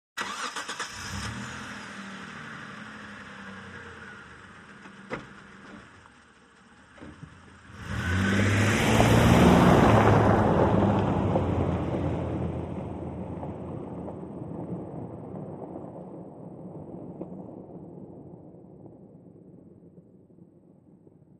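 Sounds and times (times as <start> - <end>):
1998 Mitsubishi Montero engine starting, exterior: 0.2 - 14.3.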